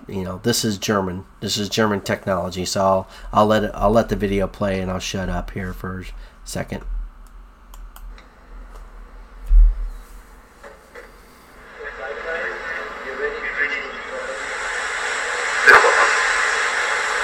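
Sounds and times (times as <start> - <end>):
speech: 0.1 - 6.9
vertical takeoff aircraft lifting off: 11.3 - 17.2.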